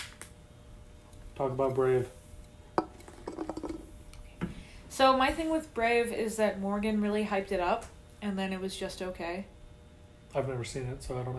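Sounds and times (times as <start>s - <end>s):
speech: 1.4s - 2.2s, 5.0s - 9.5s, 10.3s - 11.3s
beer being opened: 2.8s - 4.2s.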